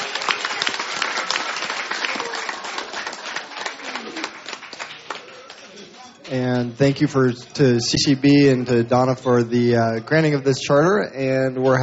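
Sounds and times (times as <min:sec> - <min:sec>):
audience applause: 0:00.0 - 0:06.2
speech: 0:06.3 - 0:11.8.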